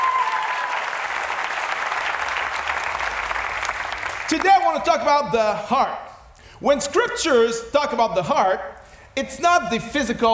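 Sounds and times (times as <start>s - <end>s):
church audience applauding: 0.0s - 4.8s
speech: 4.3s - 6.0s, 6.6s - 10.3s.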